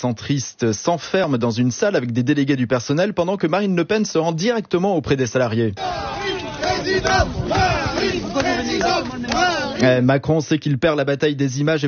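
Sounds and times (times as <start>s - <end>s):
speech: 0.0s - 6.1s, 6.7s - 11.8s
hostile crowd of factory workers shouting and jeering at the Whirlpool Amiens plant: 5.8s - 9.8s.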